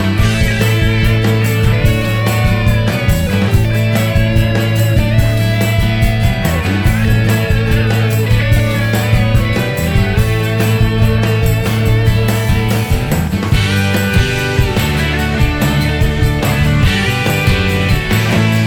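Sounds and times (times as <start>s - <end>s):
12-string guitar: 0.0s - 18.6s.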